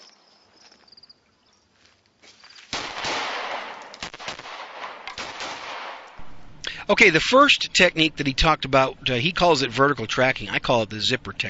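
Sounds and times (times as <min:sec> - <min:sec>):
live gunfire: 0:02.7 - 0:06.5
speech: 0:06.9 - 0:11.4.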